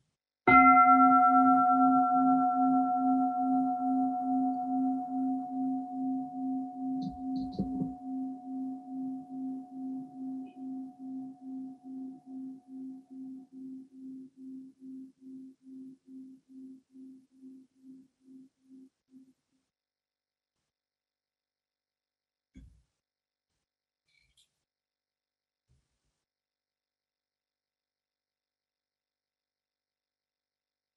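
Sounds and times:
meditation bell ringing: 0:00.5 - 0:15.9.

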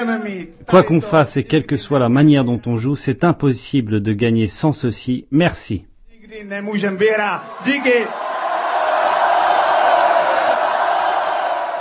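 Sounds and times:
speech: 0:00.0 - 0:08.2
crowd cheering celebrating victory: 0:07.0 - 0:11.8
loud drawn-out shouts: 0:07.2 - 0:11.8.

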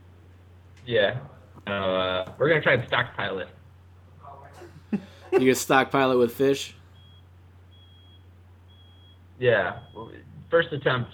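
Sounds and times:
speech: 0:00.8 - 0:03.6, 0:04.9 - 0:06.8, 0:09.4 - 0:11.1
dump truck beeping outside: 0:06.8 - 0:11.1.

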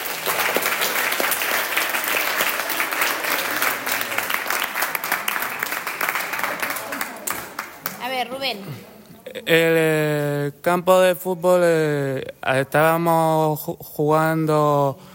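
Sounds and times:
crowd applauding: 0:00.0 - 0:08.0
speech: 0:08.2 - 0:15.1.

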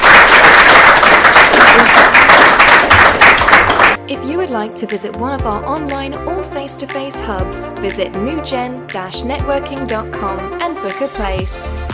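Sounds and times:
audience applause: 0:00.0 - 0:04.0
speech: 0:04.6 - 0:11.7.

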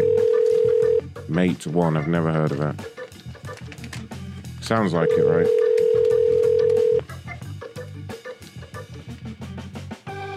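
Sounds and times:
telephone call ringing: 0:00.0 - 0:01.0, 0:05.0 - 0:07.0
speech: 0:01.3 - 0:03.0, 0:04.7 - 0:05.6.

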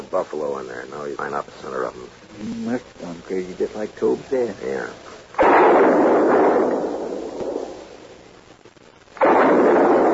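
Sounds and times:
speech: 0:00.1 - 0:05.1
Sharps rifle shots in a Western radio drama: 0:05.4 - 0:07.9, 0:09.2 - 0:10.1.

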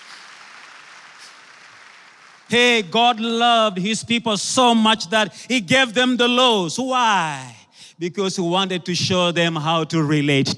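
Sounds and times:
audience clapping hands in praise: 0:00.0 - 0:03.4
speech: 0:02.5 - 0:10.5.

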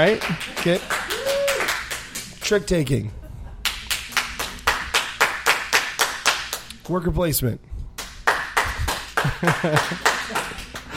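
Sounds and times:
speech: 0:00.0 - 0:01.0, 0:02.5 - 0:03.2, 0:06.9 - 0:07.7, 0:09.2 - 0:10.5
audience clapping: 0:00.0 - 0:02.6, 0:03.6 - 0:06.7, 0:08.0 - 0:10.9.

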